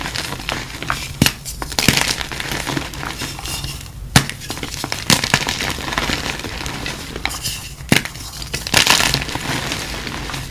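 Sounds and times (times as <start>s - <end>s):
crushing and crinkling: 0.0s - 10.5s.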